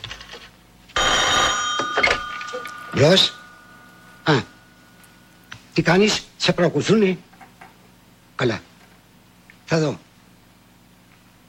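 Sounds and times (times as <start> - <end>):
telephone bell ringing: 1.0 - 5.4
speech: 3.0 - 3.4, 4.3 - 4.5, 5.8 - 7.3, 8.4 - 8.7, 9.7 - 10.0.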